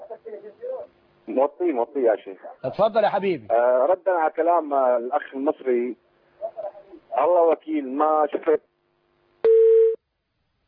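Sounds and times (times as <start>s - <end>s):
speech: 1.3s - 6.1s, 7.2s - 8.7s
telephone busy tone after a caller's line is cut off: 9.4s - 10.0s.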